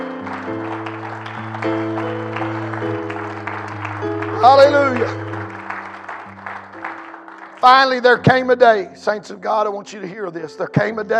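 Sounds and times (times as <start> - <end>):
people clapping hands: 0.0 - 8.8
speech: 4.4 - 5.2, 7.6 - 11.1.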